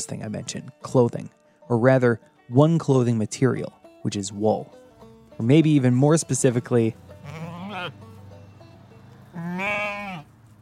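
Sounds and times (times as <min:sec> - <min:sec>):
speech: 0:00.0 - 0:04.8, 0:05.4 - 0:08.1
sheep of a breed raised for wool bleating: 0:07.1 - 0:08.1, 0:09.3 - 0:10.3.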